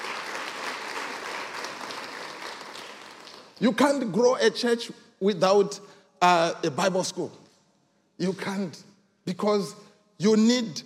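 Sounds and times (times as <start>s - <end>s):
crowd clapping: 0.0s - 3.9s
speech: 3.6s - 7.4s, 8.2s - 10.8s.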